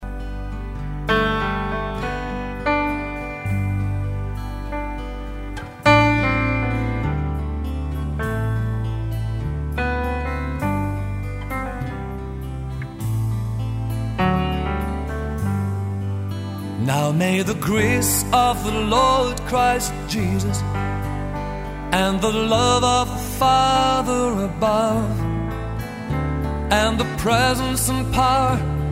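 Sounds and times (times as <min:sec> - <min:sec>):
piano: 0:00.0 - 0:28.9.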